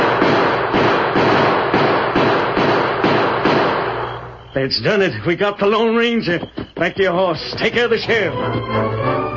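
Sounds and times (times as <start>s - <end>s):
gunshots: 0.0s - 4.3s
speech: 4.6s - 9.2s.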